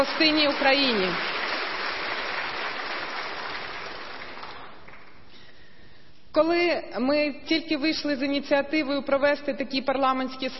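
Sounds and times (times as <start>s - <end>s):
speech: 0.0s - 1.4s, 6.3s - 10.5s
audience applause: 0.0s - 5.2s.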